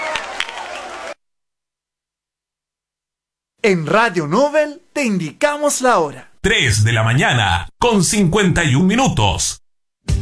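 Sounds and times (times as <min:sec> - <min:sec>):
audience applause: 0:00.0 - 0:01.2
speech: 0:03.6 - 0:10.1.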